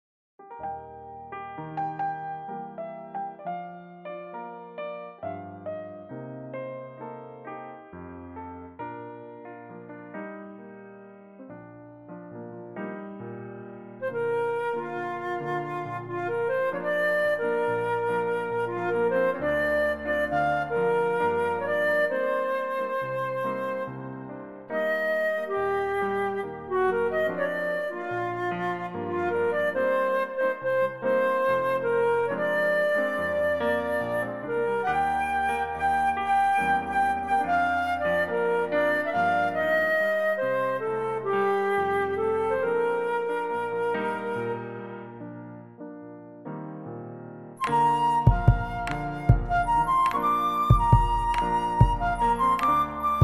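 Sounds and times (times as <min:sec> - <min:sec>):
flute playing in B flat: 0:00.4 - 0:10.7, 0:11.4 - 0:46.1, 0:47.6 - 0:53.2.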